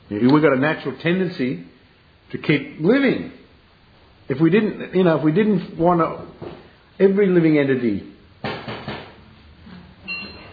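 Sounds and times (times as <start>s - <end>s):
speech: 0.1s - 1.7s, 2.3s - 3.4s, 4.3s - 6.4s, 7.0s - 8.1s
banging on door: 8.4s - 9.2s.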